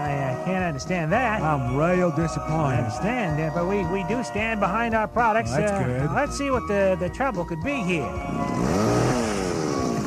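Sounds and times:
speech: 0:00.7 - 0:08.8
chainsaw running: 0:08.3 - 0:10.0.

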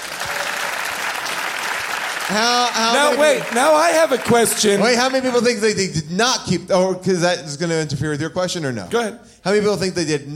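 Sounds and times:
audience applause: 0:00.0 - 0:05.6
speech: 0:02.3 - 0:10.3.

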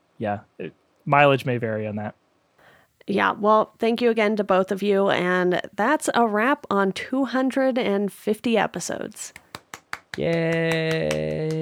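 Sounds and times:
speech: 0:00.2 - 0:02.2, 0:03.1 - 0:09.4, 0:10.2 - 0:11.6
hand claps: 0:09.3 - 0:11.6.

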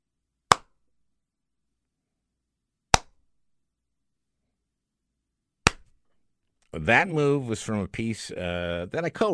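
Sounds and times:
sarcastic slow clapping: 0:00.5 - 0:00.8
speech: 0:06.8 - 0:09.3.

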